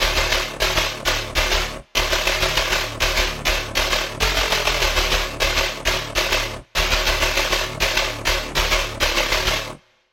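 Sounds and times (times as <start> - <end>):
bass: 0.0 - 9.9.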